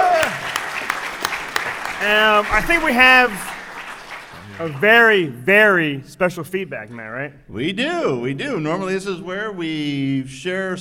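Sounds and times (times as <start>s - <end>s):
audience applause: 0.0s - 5.4s
speech: 2.0s - 3.5s, 4.5s - 10.8s.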